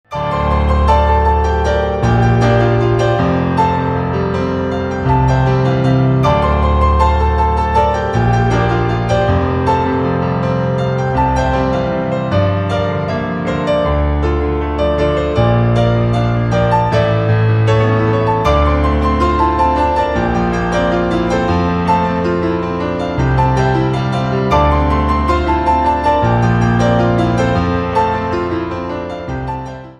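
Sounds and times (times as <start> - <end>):
piano ringtone: 0.1 - 29.9.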